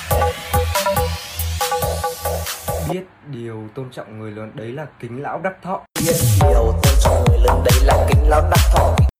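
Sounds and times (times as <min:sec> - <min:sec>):
TikTok remix music: 0:00.0 - 0:03.0, 0:06.0 - 0:09.1.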